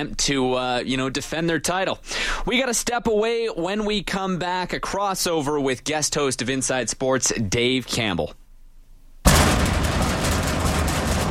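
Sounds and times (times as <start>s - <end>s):
speech: 0.0s - 8.4s
overhead door slamming loudly: 9.3s - 11.2s.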